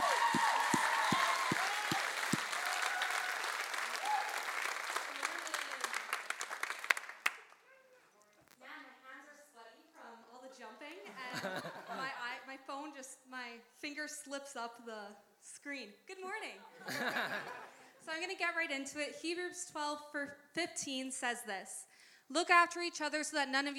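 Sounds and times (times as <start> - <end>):
audience applause welcoming a speaker at a church service: 0.0 - 7.7
laughter: 11.0 - 12.4, 16.6 - 18.0
speech: 14.2 - 23.7.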